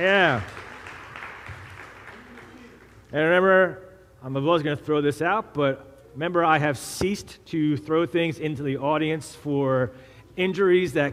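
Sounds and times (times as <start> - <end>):
speech: 0.0 - 0.6, 3.1 - 11.1
audience applause for the flight attendants at a live show: 0.0 - 3.0.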